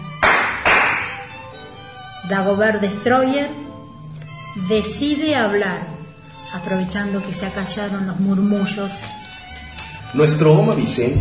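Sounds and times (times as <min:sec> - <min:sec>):
two people clapping hands for attention: 0:00.1 - 0:01.3
speech: 0:02.2 - 0:03.7, 0:04.6 - 0:05.9, 0:06.5 - 0:09.2, 0:10.1 - 0:11.1.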